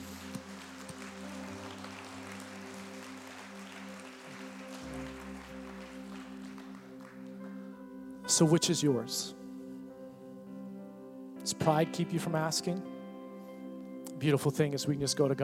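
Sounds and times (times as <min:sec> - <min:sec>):
audience clapping: 0:00.0 - 0:07.7
sustained low keyboard or organ chords: 0:00.0 - 0:15.4
speech: 0:08.4 - 0:09.4, 0:11.5 - 0:13.0, 0:14.2 - 0:15.4.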